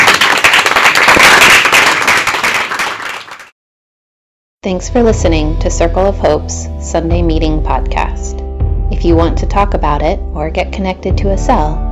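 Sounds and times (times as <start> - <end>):
round of applause: 0.0 - 3.6
speech: 4.6 - 8.4, 9.0 - 11.9.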